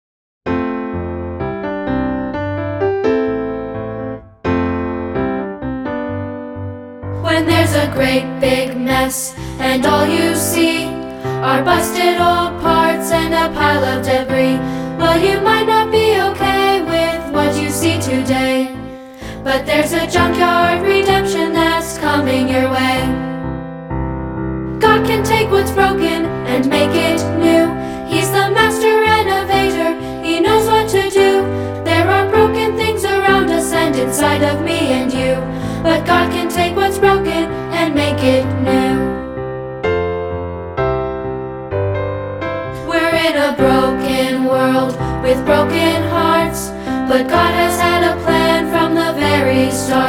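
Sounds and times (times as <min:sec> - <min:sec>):
piano: 0:00.5 - 0:50.0
person singing: 0:07.2 - 0:23.2, 0:24.8 - 0:39.3, 0:42.8 - 0:50.0.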